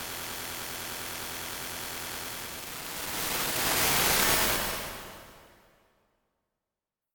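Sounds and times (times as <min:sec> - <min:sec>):
sci-fi scanning machine technology static: 0:00.2 - 0:05.6.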